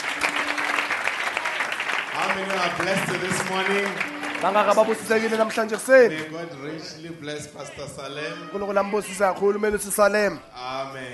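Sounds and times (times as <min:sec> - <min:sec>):
audience applauding: 0:00.0 - 0:06.4
speech: 0:02.2 - 0:11.1.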